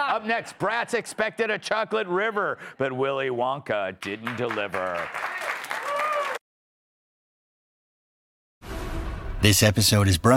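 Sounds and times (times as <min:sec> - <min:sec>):
speech: 0:00.1 - 0:05.5, 0:09.4 - 0:10.3
audience clapping: 0:04.0 - 0:06.4.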